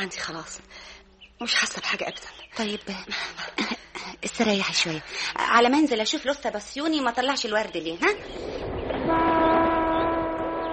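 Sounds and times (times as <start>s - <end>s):
speech: 0.0s - 9.3s
train arriving and leaving a station, rumbling: 8.2s - 10.7s
train horn: 9.0s - 10.7s.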